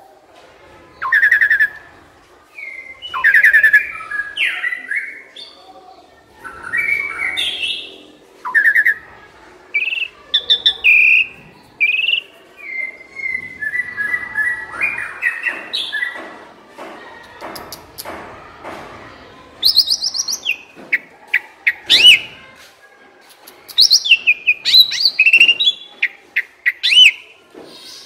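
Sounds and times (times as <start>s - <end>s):
Asian pied starling song: 1.0s - 1.8s, 2.6s - 5.5s, 6.5s - 9.0s, 9.7s - 16.2s, 19.6s - 22.4s, 23.7s - 27.3s.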